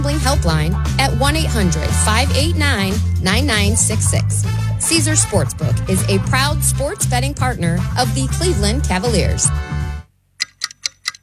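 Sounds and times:
speech: 0.2 - 9.8
clock ticking: 10.4 - 11.2.

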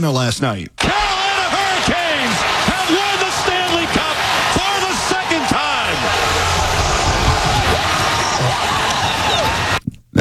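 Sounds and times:
speech: 0.0 - 0.8
crowd cheering at a watch party: 0.8 - 9.8
laughter: 0.8 - 9.8
scattered whoops: 0.8 - 9.8.

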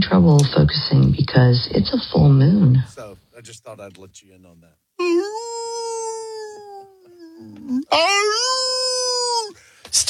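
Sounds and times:
speech: 0.0 - 5.6, 7.4 - 8.9
coyotes howling: 5.0 - 9.6.

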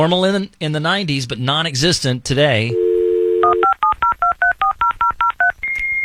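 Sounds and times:
speech: 0.0 - 2.8
dial-up modem dial tone: 2.8 - 3.8
touch-tone beeps: 2.8 - 6.0.

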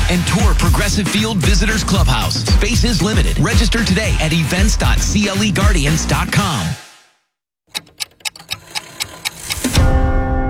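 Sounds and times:
speech: 0.1 - 6.8
clock striking: 7.7 - 9.8.

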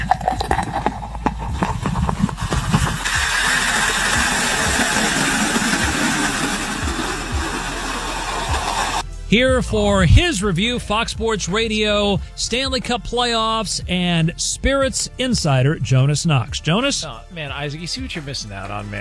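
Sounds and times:
beer being poured into a skate-shaped mug: 0.0 - 9.0
speech: 9.3 - 18.9.

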